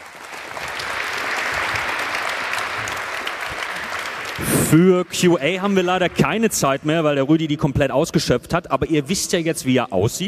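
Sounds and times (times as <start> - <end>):
audience applause: 0.0 - 7.4
speech: 4.4 - 10.2.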